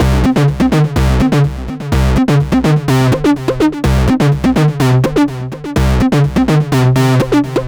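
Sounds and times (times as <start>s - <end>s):
bass: 0.0s - 7.6s.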